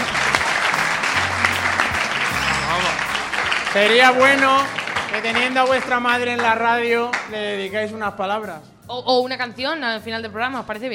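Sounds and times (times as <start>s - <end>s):
applause: 0.0s - 7.4s
speech: 3.7s - 10.9s.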